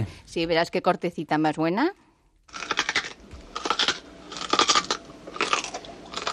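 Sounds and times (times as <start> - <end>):
speech: 0.0 - 2.6
crunching and chewing a nut: 2.5 - 6.3.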